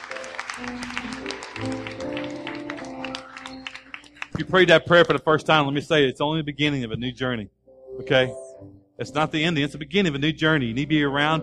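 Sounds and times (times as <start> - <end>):
audience applauding at a church service after a prayer: 0.0 - 5.2
sustained keyboard chords: 0.0 - 6.0, 6.7 - 11.4
speech: 0.6 - 1.7, 4.4 - 11.4.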